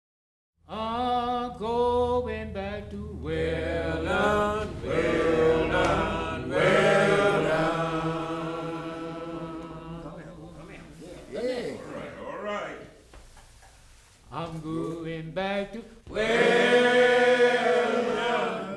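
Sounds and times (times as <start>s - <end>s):
men singing a railroad work song without instruments: 0.7s - 10.7s, 14.3s - 18.7s.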